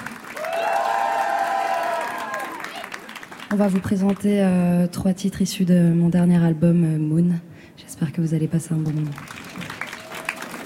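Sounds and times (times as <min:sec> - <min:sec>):
audience applauding: 0:00.0 - 0:04.2, 0:08.9 - 0:10.6
audience cheering in high sustained whoops: 0:00.3 - 0:03.0, 0:09.7 - 0:10.6
speech: 0:03.5 - 0:09.4.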